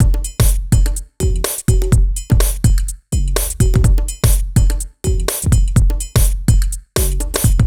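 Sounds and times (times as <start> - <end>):
lounge house music loop: 0.0 - 7.6.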